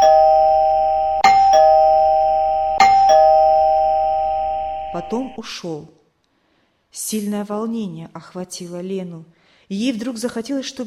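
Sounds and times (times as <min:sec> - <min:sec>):
doorbell ringing: 0:00.0 - 0:05.4
speech: 0:05.0 - 0:06.0, 0:06.9 - 0:10.8.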